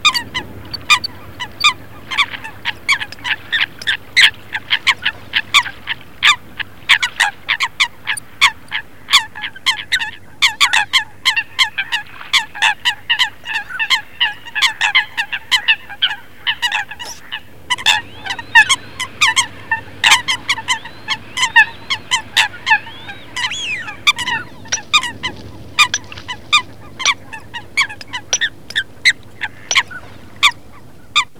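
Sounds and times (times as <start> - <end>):
Eurasian coot calls: 0.0 - 31.3.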